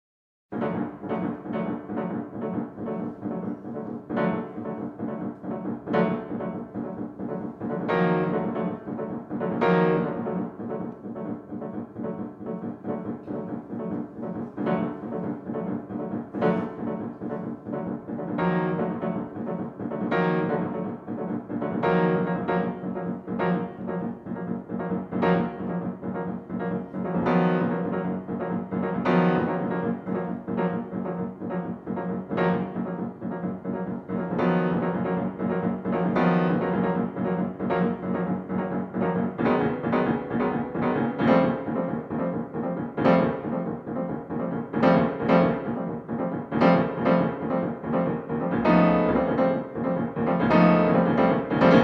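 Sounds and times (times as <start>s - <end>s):
piano etude: 0.5s - 51.8s.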